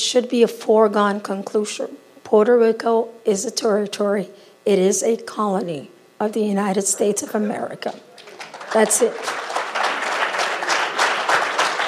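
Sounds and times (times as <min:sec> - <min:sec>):
speech: 0:00.1 - 0:08.1, 0:08.7 - 0:09.4
crowd applauding: 0:08.2 - 0:11.8.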